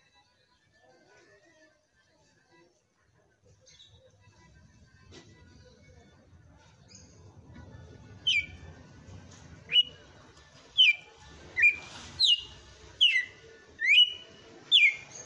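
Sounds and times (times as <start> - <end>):
red-cowled cardinal singing whistled notes: 8.3 - 8.6, 9.7 - 10.0, 10.8 - 15.2.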